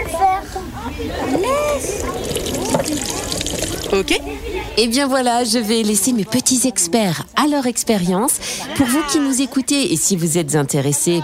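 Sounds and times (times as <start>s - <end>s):
water being poured through filter grids into a tub: 1.3s - 4.2s
speech: 3.9s - 11.2s.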